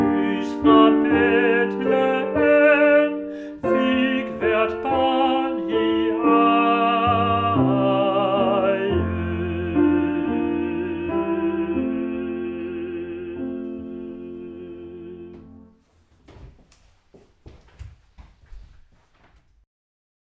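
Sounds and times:
soprano choir singing: 0.0s - 15.7s.

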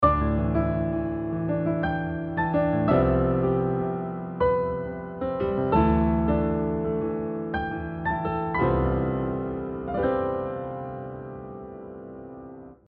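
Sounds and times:
pandiatonic music: 0.0s - 12.6s.

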